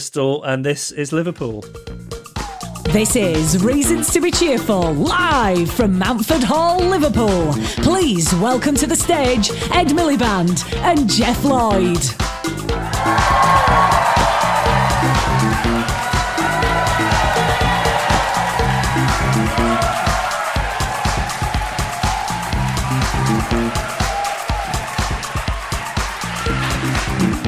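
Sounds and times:
speech: 0.0s - 1.9s, 2.9s - 13.9s
audience whooping and cheering at a live show in Mountford Hall, Liverpool: 12.7s - 27.4s.

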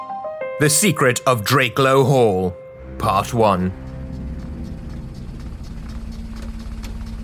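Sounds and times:
speech: 0.6s - 3.8s
old motor car jerking and shuddering: 3.8s - 7.2s.

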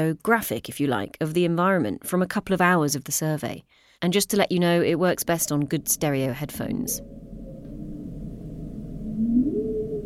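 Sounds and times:
speech: 0.0s - 7.2s
humpback whale vocalizations: 7.0s - 10.0s.

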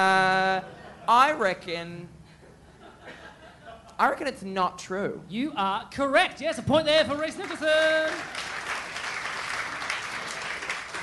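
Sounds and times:
speech: 0.0s - 2.2s, 4.0s - 8.5s
weak applause: 7.4s - 11.0s.

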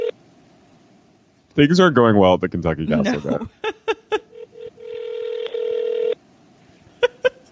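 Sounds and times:
speech: 1.6s - 3.8s
laughter: 2.9s - 4.4s, 7.0s - 7.5s
telephone ringing tone calling the Kentucky Castle reservations line: 4.3s - 6.2s.

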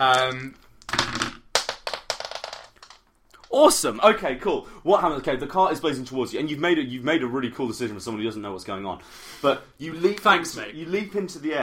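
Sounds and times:
speech: 0.0s - 0.6s, 3.5s - 11.6s
dice rolling on a table: 0.0s - 3.7s.

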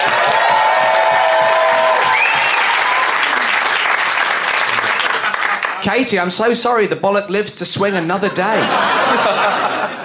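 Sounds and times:
people whooping and cheering: 0.0s - 3.9s
audience applause: 0.0s - 5.8s
speech: 5.8s - 10.0s
laughter: 7.9s - 10.0s.

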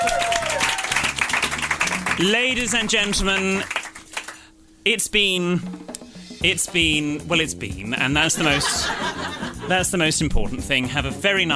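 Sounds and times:
applause: 0.0s - 4.5s
speech: 2.2s - 3.8s, 4.8s - 11.5s
laughter: 8.2s - 9.9s.

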